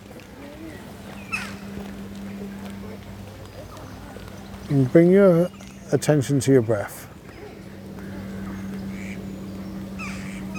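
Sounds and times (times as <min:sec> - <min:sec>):
steady low hum: 0:00.0 - 0:10.5
speech: 0:04.7 - 0:07.0
ducks quacking at a pond: 0:08.0 - 0:09.3, 0:10.0 - 0:10.5.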